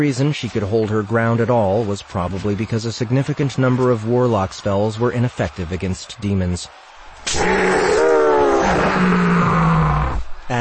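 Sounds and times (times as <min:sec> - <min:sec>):
speech: 0:00.0 - 0:08.0, 0:08.7 - 0:09.6
hellhound piercing howl: 0:07.2 - 0:10.3.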